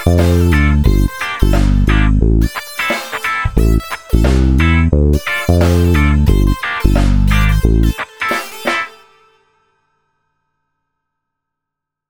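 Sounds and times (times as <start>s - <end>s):
slow ska game music loop: 0.0s - 8.9s.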